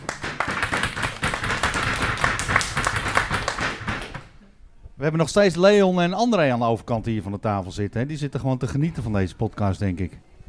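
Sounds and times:
crowd clapping: 0.0 - 4.3
speech: 5.0 - 10.4.

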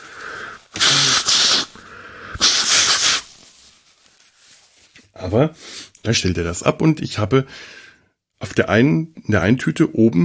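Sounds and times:
person blowing nose: 0.0 - 3.4
speech: 5.2 - 7.8, 8.4 - 10.2.

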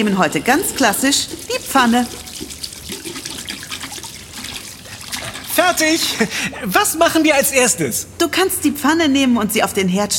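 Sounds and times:
speech: 0.0 - 2.6, 5.6 - 10.1
running tap water: 0.0 - 6.4.

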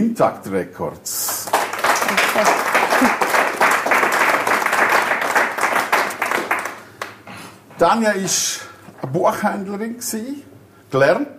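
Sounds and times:
speech: 0.0 - 1.4, 2.1 - 3.3, 7.8 - 11.3
audience applause: 1.3 - 7.2.

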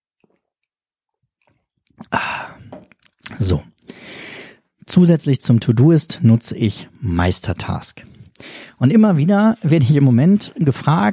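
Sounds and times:
person sipping a drink: 1.4 - 4.8
speech: 3.4 - 3.7, 5.0 - 11.1
breathy exhale: 3.9 - 4.6.

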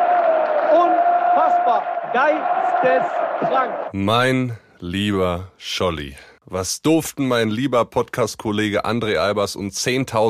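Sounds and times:
football fans cheering: 0.0 - 4.0
man speaking excitedly: 0.7 - 10.2
speech: 1.7 - 10.2.

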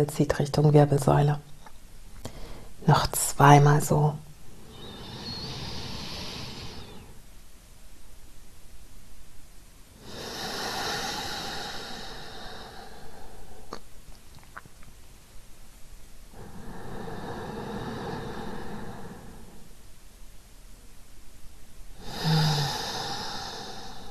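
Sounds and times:
speech: 0.0 - 1.5, 2.8 - 4.2
slow deep conscious breathing in and out: 2.2 - 2.8, 4.5 - 7.3, 10.0 - 13.8, 16.3 - 19.8, 21.9 - 24.0.

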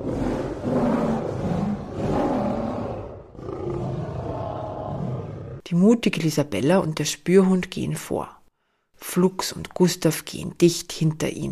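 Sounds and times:
monster roaring: 0.0 - 5.6
speech: 5.7 - 8.4, 9.0 - 11.5.

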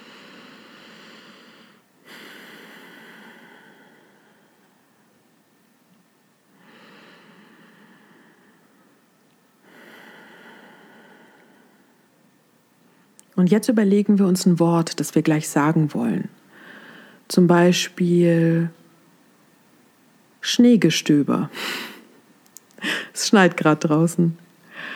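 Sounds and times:
deep breathing in through nose, out through mouth: 0.0 - 4.9, 6.6 - 9.0, 9.6 - 12.1, 16.5 - 17.2, 22.8 - 23.2, 24.7 - 24.9
speech: 13.4 - 16.4, 17.3 - 18.8, 20.4 - 21.9, 23.2 - 24.4.

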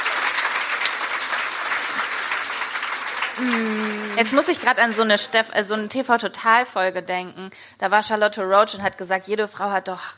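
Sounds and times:
audience applause: 0.0 - 5.2
speech: 3.4 - 10.1.

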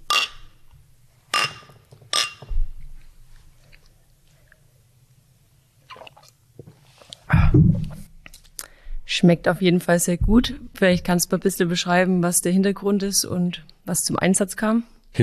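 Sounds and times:
glasses clinking: 0.0 - 0.5, 1.4 - 2.5
people sipping and swallowing St. Hell pale beer: 5.9 - 6.4
speech: 9.2 - 15.2.

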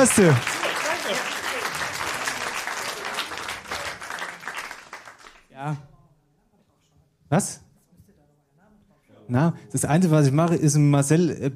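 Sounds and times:
speech: 0.0 - 0.5, 5.6 - 5.9, 7.3 - 7.6, 9.3 - 11.5
audience applause congratulating someone handed a CD: 0.0 - 5.5.

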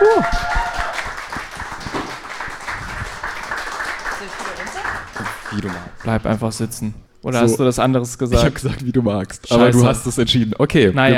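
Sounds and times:
audience applause: 0.0 - 6.3
speech: 5.6 - 11.1.

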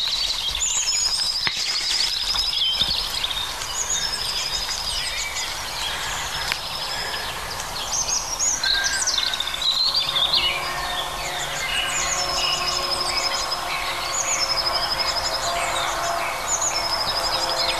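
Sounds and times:
European robins singing in a chorus: 0.0 - 17.7.

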